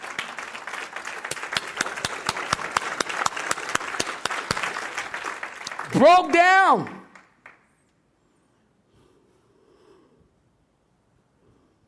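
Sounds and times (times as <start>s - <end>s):
audience clapping: 0.0s - 7.7s
speech: 5.9s - 7.0s.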